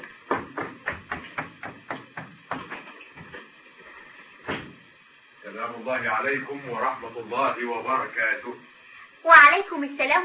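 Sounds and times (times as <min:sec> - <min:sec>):
sharp knocks on a wooden door: 0:00.3 - 0:03.4
speech: 0:05.6 - 0:10.2.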